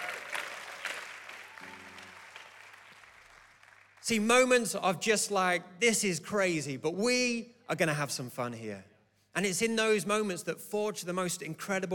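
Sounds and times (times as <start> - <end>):
audience applause: 0.0 - 4.0
speech: 4.1 - 11.9.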